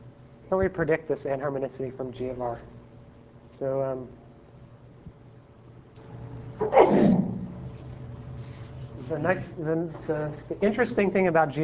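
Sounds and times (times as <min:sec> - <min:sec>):
low quiet hum: 0:00.0 - 0:11.6
speech: 0:00.5 - 0:02.8, 0:03.6 - 0:04.2, 0:09.1 - 0:11.6
sneeze: 0:06.6 - 0:07.5.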